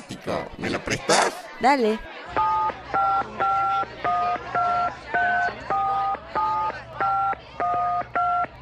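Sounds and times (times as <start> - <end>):
speech: 0.2 - 2.5
mobile phone keypad dialing tones: 2.4 - 8.6.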